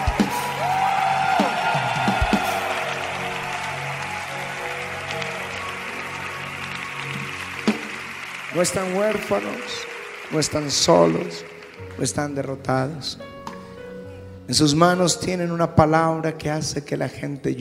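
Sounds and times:
audience applauding: 0:00.0 - 0:12.1
speech: 0:08.6 - 0:13.3, 0:14.5 - 0:17.5.

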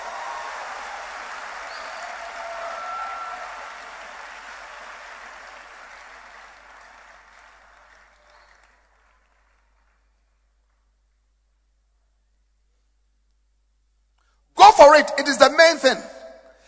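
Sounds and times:
congregation clapping during a church service: 0:00.0 - 0:11.2
speech: 0:14.8 - 0:16.1.

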